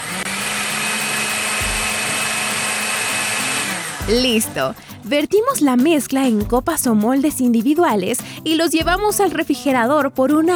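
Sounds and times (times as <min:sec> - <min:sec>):
blender blending a mixture with dissolved gelatin: 0:00.0 - 0:04.8
speech: 0:04.1 - 0:10.5.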